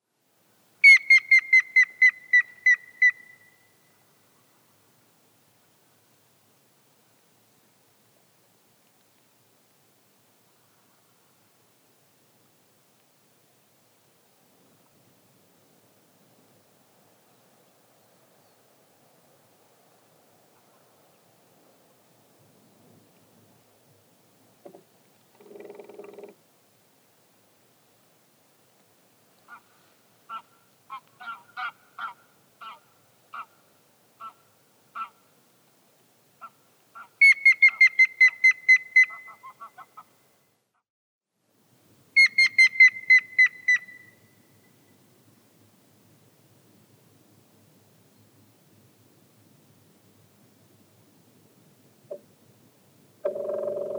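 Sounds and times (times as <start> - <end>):
grey-headed woodpecker calling: 0.8 - 3.7, 24.6 - 26.4, 36.4 - 40.1, 42.2 - 44.3, 53.2 - 53.9.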